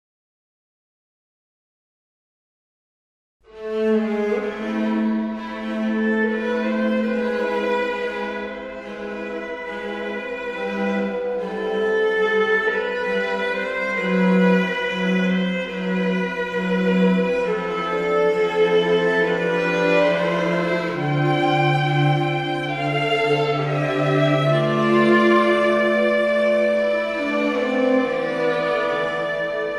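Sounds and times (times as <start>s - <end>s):
string quartet: 3.5s - 29.7s.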